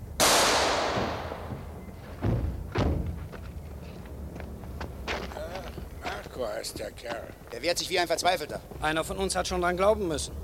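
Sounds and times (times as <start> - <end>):
gunshot in a German radio crime drama: 0.2 - 1.8
dull thuds: 0.4 - 3.8
speech: 6.4 - 10.4.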